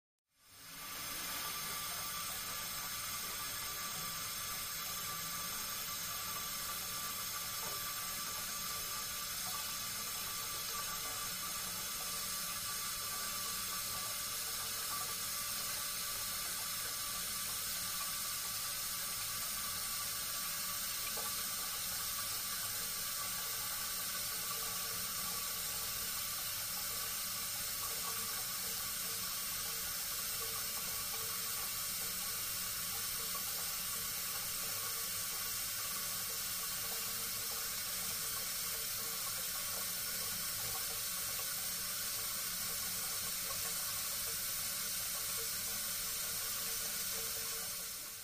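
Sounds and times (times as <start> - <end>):
water running in home water pipes: 0.3 - 48.2.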